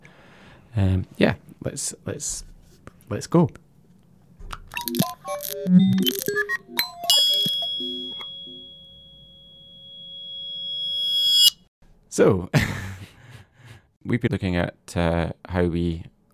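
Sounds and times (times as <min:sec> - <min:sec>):
speech: 0:00.8 - 0:02.5, 0:03.1 - 0:03.6, 0:04.9 - 0:07.1, 0:12.2 - 0:12.9, 0:14.0 - 0:16.1
random intro jingle noise from a button: 0:04.8 - 0:11.6
laughter: 0:12.6 - 0:13.8.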